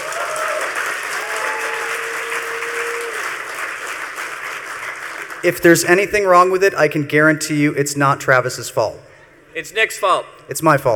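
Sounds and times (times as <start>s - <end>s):
audience applause: 0.0s - 5.4s
speech: 5.4s - 10.9s.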